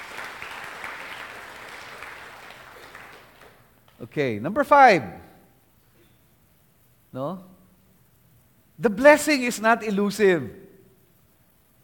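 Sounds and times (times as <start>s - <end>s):
congregation applauding during a church service: 0.0s - 4.1s
speech: 4.0s - 5.3s, 7.1s - 7.5s, 8.8s - 10.6s.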